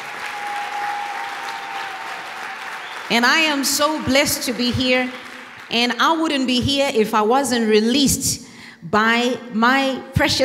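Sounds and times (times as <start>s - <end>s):
audience clapping hands: 0.0s - 6.2s
speech: 3.1s - 10.4s.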